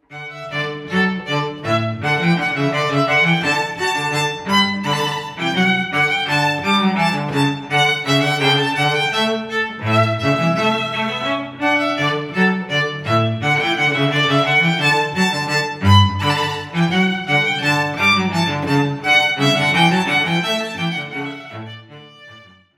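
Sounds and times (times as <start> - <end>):
instrumental duo playing a rondeau: 0.0 - 22.7.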